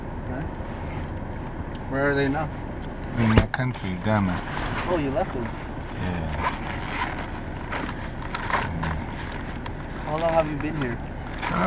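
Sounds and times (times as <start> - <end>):
car engine rumble: 0.0 - 11.6
road noise: 0.0 - 11.6
speech: 1.9 - 7.0, 10.1 - 11.6
faint scraping and clunking: 3.1 - 11.6.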